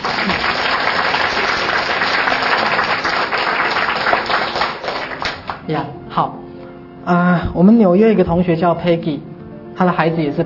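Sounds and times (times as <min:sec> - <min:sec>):
audience applause: 0:00.0 - 0:05.6
speech: 0:05.7 - 0:06.4, 0:07.1 - 0:10.4.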